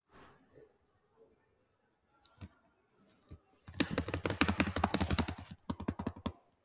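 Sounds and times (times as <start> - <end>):
fast typing: 3.7 - 6.4.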